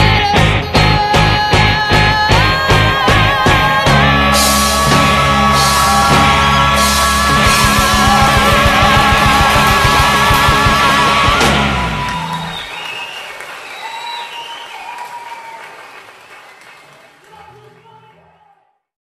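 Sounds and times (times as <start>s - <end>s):
funk music: 0.0s - 12.8s.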